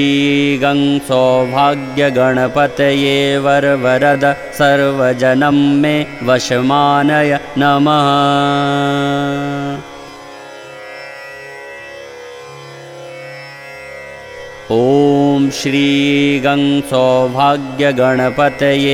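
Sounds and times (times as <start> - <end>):
mantra chanting: 0.0 - 10.0, 14.7 - 18.9.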